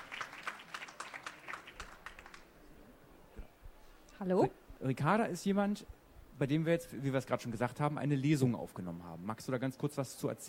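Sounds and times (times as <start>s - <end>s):
short audience applause: 0.0s - 2.6s
speech: 4.2s - 10.4s.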